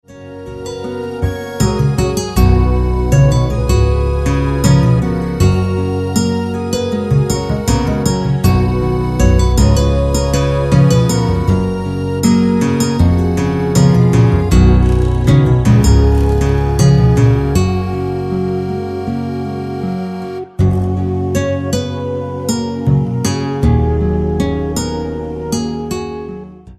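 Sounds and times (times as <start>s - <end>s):
Hawaiian guitar: 0.0s - 26.7s.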